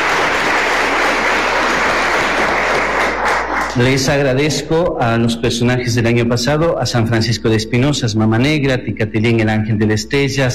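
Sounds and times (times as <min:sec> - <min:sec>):
audience applause: 0:00.0 - 0:04.2
speech: 0:03.8 - 0:10.5.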